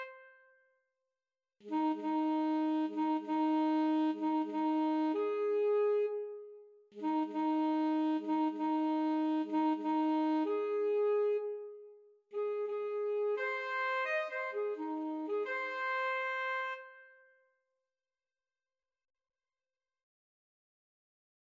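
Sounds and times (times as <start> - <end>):
saxophone playing an infantry bugle call: 0.0 - 0.3, 1.6 - 6.4, 7.0 - 11.6, 12.4 - 17.1.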